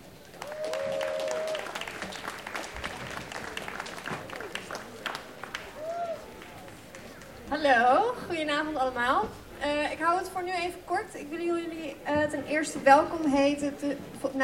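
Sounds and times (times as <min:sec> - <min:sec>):
audience applause: 0:00.0 - 0:07.4
speech: 0:07.6 - 0:14.4.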